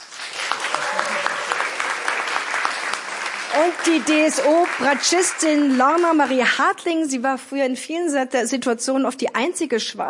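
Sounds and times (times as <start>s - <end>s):
audience applause: 0.0s - 6.4s
speech: 3.6s - 10.0s.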